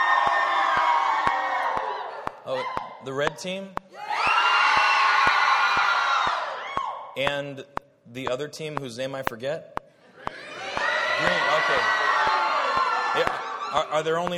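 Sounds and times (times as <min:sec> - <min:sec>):
children cheering for teams: 0:00.0 - 0:03.0, 0:04.0 - 0:07.1, 0:10.2 - 0:14.2
speech: 0:02.5 - 0:03.8, 0:07.2 - 0:09.7, 0:11.2 - 0:12.0, 0:13.2 - 0:14.3.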